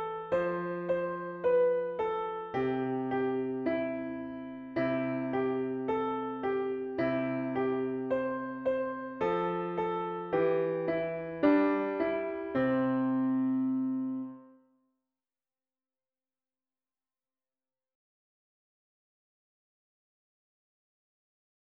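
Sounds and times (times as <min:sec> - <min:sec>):
piano: 0:00.0 - 0:14.7.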